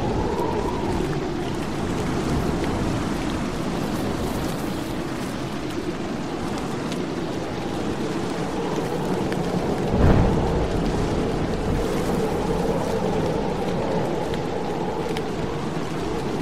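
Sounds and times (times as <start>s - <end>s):
rain: 0.0s - 16.4s
wind: 0.0s - 16.4s
thunder crack: 9.8s - 13.0s.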